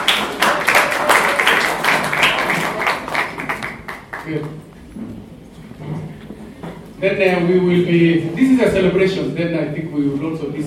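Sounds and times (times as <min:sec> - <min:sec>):
audience clapping: 0:00.0 - 0:04.7
speech: 0:04.3 - 0:05.2, 0:07.0 - 0:10.6.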